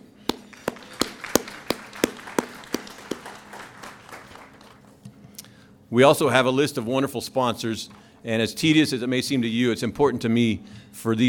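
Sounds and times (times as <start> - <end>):
audience applause: 0.3 - 5.0
speech: 5.9 - 11.2.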